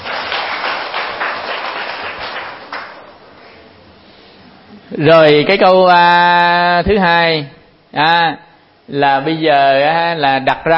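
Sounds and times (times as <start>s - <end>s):
audience applause: 0.0s - 3.2s
speech: 4.9s - 10.7s.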